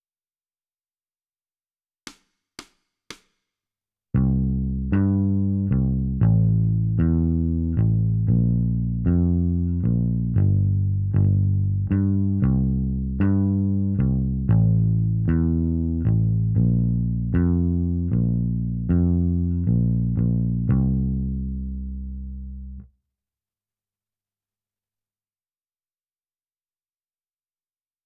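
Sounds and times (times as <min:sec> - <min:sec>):
bass: 0:04.2 - 0:22.9.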